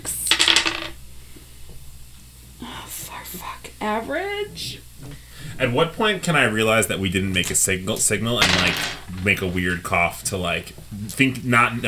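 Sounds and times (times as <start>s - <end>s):
dice clattering on a hard surface: 0.2s - 1.0s, 8.3s - 9.6s
speech: 3.2s - 11.8s.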